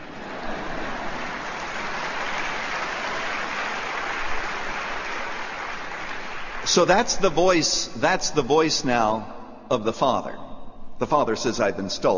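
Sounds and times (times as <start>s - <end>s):
audience clapping: 0.0s - 7.1s
speech: 6.7s - 12.1s.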